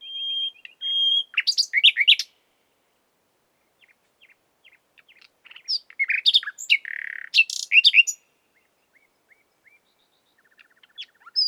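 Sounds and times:
common nightingale singing: 0.0s - 2.4s, 3.6s - 11.4s.

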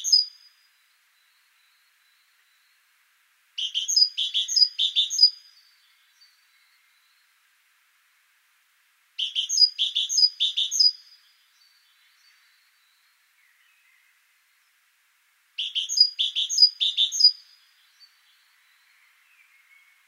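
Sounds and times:
great tit calls: 0.0s - 0.5s, 3.6s - 6.3s, 9.2s - 11.2s, 15.6s - 18.3s.

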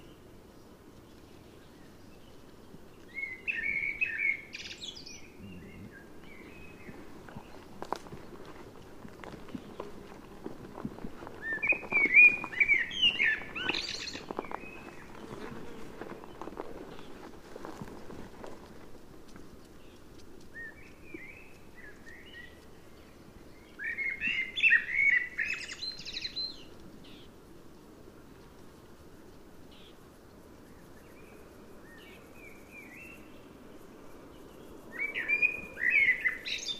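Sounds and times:
common blackbird singing: 3.1s - 7.6s, 11.4s - 15.3s, 23.6s - 27.3s, 34.9s - 36.7s.

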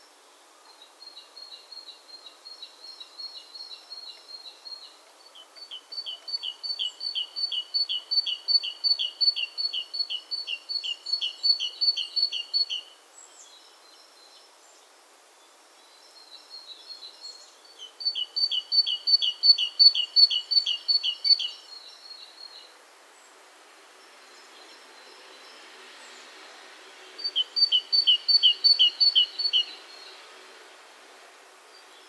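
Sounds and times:
great tit singing: 1.4s - 12.9s, 16.8s - 22.7s, 27.2s - 30.2s.

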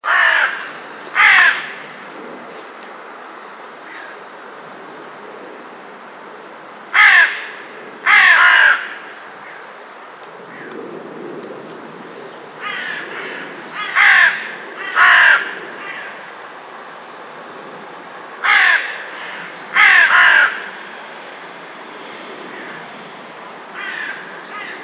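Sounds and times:
Corvus corone calling: 0.0s - 2.5s, 6.9s - 9.6s, 12.6s - 16.6s, 18.4s - 20.9s, 23.8s - 24.8s.

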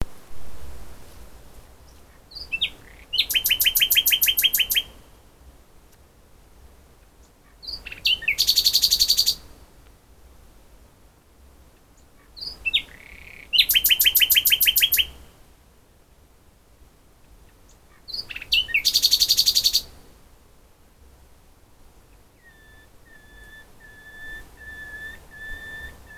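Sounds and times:
common nightingale singing: 1.8s - 5.2s, 7.1s - 9.5s, 11.8s - 15.3s, 17.2s - 20.0s, 22.0s - 26.1s.

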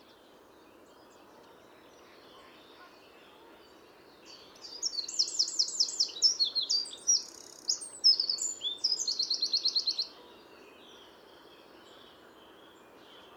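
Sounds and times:
hiss: 0.0s - 13.3s
Eurasian wren song: 4.3s - 10.1s.

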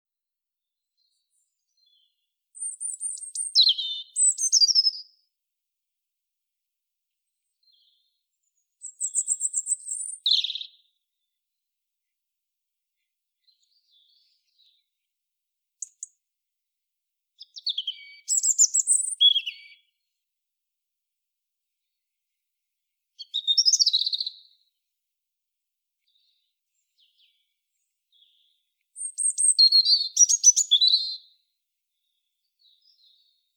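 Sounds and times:
European robin song: 0.7s - 5.2s, 7.3s - 11.3s, 15.8s - 16.2s, 17.4s - 20.1s, 23.2s - 24.7s, 26.0s - 33.5s.

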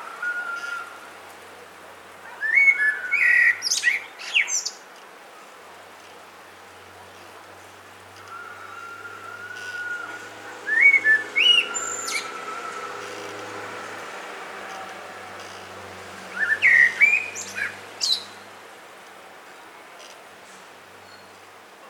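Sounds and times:
Common blackbird (Turdus merula) singing: 0.0s - 1.0s, 2.2s - 4.8s, 8.2s - 13.7s, 15.4s - 18.4s, 21.0s - 21.4s.

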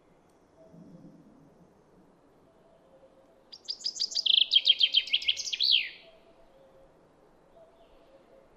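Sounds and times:
common chaffinch Fringilla coelebs singing: 0.0s - 8.5s.

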